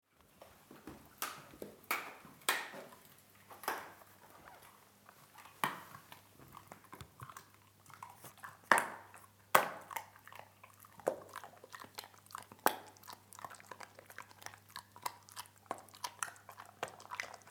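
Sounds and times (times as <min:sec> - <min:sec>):
dog chewing food: 0:03.6 - 0:17.4.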